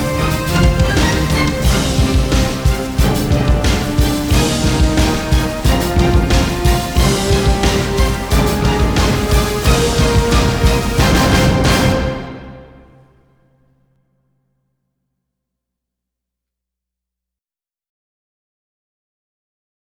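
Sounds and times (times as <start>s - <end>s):
orchestra playing: 0.0s - 13.2s.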